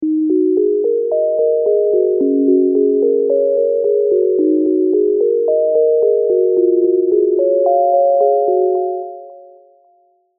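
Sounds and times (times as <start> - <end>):
ambient downtempo MIDI melody in E flat minor: 0.0 - 10.3.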